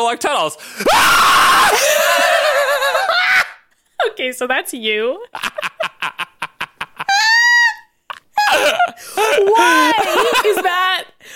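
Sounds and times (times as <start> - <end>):
speech: 0.0 - 2.5, 4.0 - 5.6, 9.4 - 11.1
person screaming: 0.8 - 3.6, 8.4 - 10.3
laughter: 1.7 - 3.5, 5.3 - 11.0.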